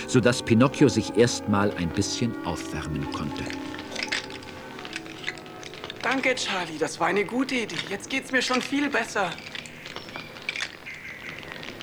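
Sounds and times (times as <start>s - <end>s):
birds chirping under the roof: 0.0s - 11.8s
speech: 0.1s - 3.7s, 6.0s - 9.5s.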